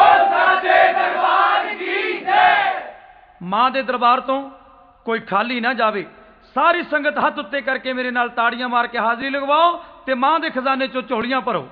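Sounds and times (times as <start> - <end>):
crowd at a devotional gathering shouting a Jaikara chant to the goddess: 0.0 - 3.0
speech: 3.5 - 11.6.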